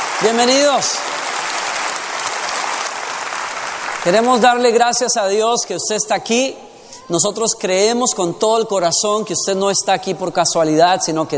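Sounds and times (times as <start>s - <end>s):
church congregation at Lakewood clapping for first-time visitors: 0.0s - 5.8s
speech: 0.2s - 1.2s, 4.0s - 11.3s.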